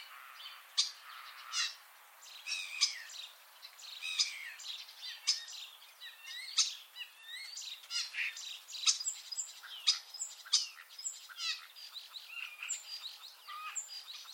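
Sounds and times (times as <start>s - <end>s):
common starling calls: 0.0s - 14.3s.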